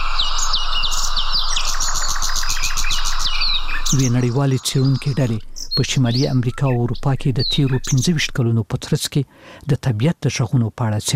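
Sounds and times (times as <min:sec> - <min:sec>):
birds chirping in gardens and villages: 0:00.0 - 0:08.5
speech: 0:03.9 - 0:11.1.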